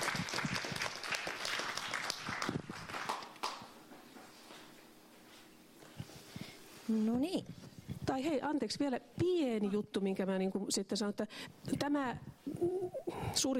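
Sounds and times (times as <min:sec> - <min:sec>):
audience applause: 0:00.0 - 0:03.7
speech: 0:06.9 - 0:13.5.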